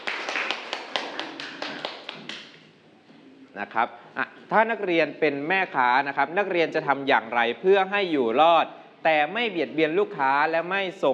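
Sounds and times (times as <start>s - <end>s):
classroom applause: 0.0s - 2.6s
speech: 3.6s - 11.1s.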